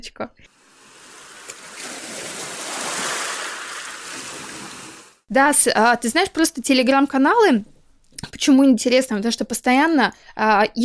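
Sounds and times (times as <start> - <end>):
speech: 0.0 - 0.6, 5.3 - 10.8
rain: 0.5 - 5.2.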